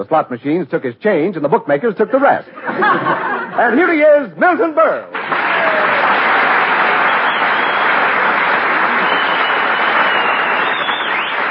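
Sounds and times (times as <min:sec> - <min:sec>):
speech: 0:00.0 - 0:05.9
laughter: 0:02.0 - 0:03.8
audience whistling: 0:05.2 - 0:11.4.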